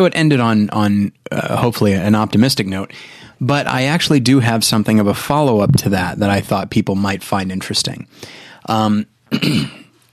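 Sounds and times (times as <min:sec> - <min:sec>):
speech: 0:00.0 - 0:09.8
person clearing throat: 0:09.3 - 0:09.9.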